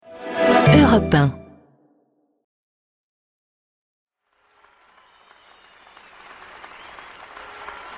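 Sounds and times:
brief sound: 0.3s - 1.6s
speech: 0.7s - 1.4s
theatre audience applauding at the Comédie-Française performance of Irène: 4.2s - 7.9s.

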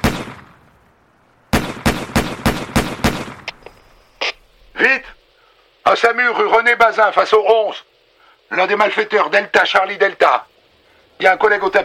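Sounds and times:
gunfire outside a bank as the police chief shoots at robbers: 0.0s - 0.7s, 1.5s - 3.5s
speech: 4.8s - 5.2s, 5.9s - 7.9s, 8.5s - 10.5s, 11.2s - 11.8s.

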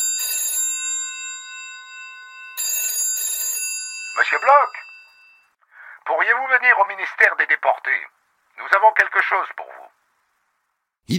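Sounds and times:
old-fashioned telephone bell ringing: 0.0s - 5.6s
speech: 4.2s - 4.9s, 6.1s - 9.7s.

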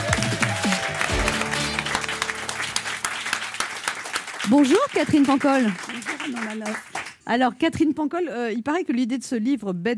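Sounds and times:
audience applause: 0.0s - 7.2s
speech: 4.5s - 9.9s.

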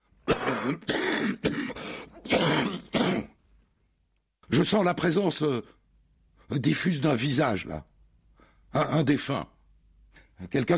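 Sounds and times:
person coughing: 0.3s - 3.4s
speech: 0.6s - 2.9s, 4.5s - 5.8s, 6.5s - 7.9s, 8.7s - 9.5s, 10.4s - 10.7s.

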